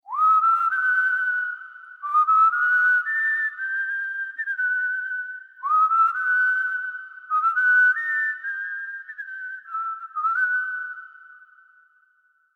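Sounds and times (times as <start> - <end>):
whistle: 0.0 - 12.5.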